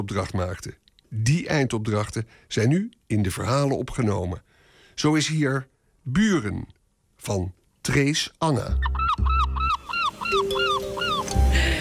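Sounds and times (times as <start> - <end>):
speech: 0.0 - 8.9, 10.3 - 11.0
seagulls calling: 8.7 - 11.8.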